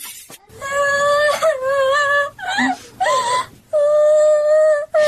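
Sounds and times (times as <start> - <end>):
girl crying in a radio drama: 0.5 - 5.0.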